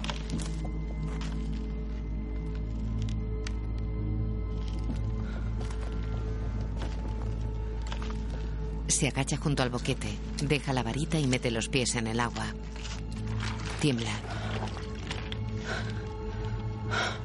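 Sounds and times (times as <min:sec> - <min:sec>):
footsteps walking slowly on ice: 0:00.0 - 0:03.9, 0:04.5 - 0:08.7, 0:12.3 - 0:16.5
speech: 0:08.9 - 0:13.0, 0:13.8 - 0:14.4.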